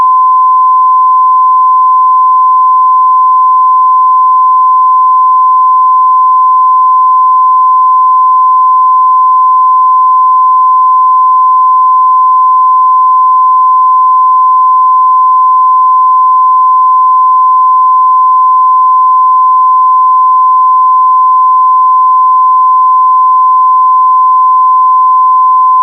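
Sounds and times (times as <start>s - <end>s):
1024 Hz sine wave tone: 0.0s - 25.8s.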